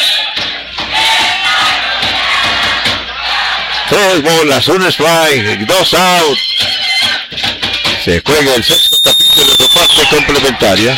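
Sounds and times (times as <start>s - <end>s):
home fans roaring at a baseball game: 0.0s - 6.4s
speech: 3.9s - 6.7s, 8.0s - 10.9s.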